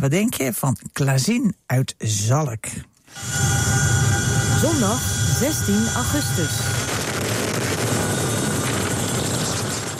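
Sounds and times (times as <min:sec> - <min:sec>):
speech: 0:00.0 - 0:03.7, 0:04.6 - 0:07.3
Dutch Chinook helicopter rotor and engine roar fighting a wildfire in Belgium: 0:03.1 - 0:09.9.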